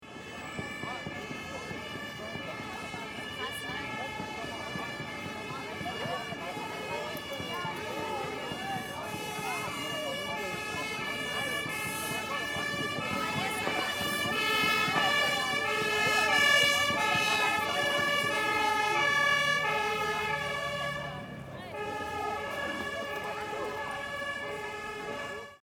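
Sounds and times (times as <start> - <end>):
emergency vehicle siren on New Year's Eve: 0.0 - 25.6.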